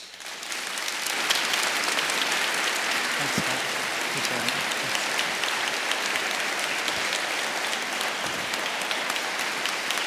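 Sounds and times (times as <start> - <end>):
church service audience applauding to welcome a speaker: 0.0 - 10.0
speech: 3.2 - 5.0.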